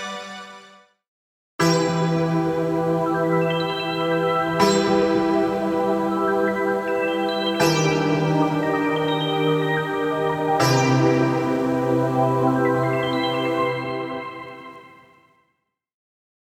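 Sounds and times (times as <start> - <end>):
ethnic chords: 1.6 - 14.8.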